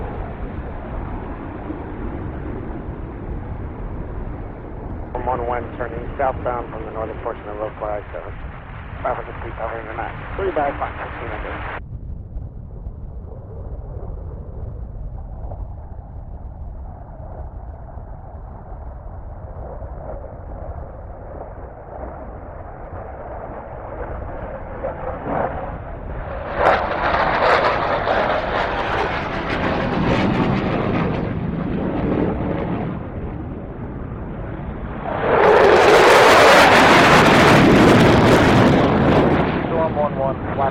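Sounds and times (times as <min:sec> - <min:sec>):
jet engine: 0:00.0 - 0:40.6
radio chatter: 0:05.2 - 0:08.3, 0:09.0 - 0:11.8.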